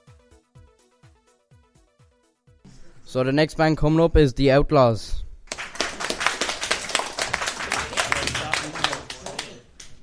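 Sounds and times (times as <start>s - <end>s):
speech: 3.0s - 5.2s
awkward sparse clapping: 5.5s - 10.0s.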